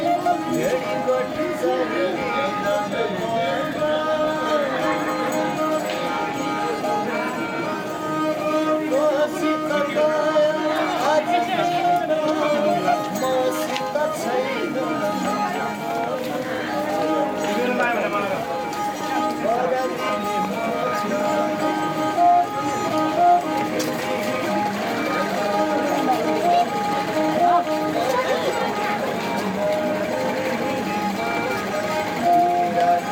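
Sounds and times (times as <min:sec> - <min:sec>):
street musicians playing in Boudha, Kathmandu, Nepal: 0:00.0 - 0:33.1.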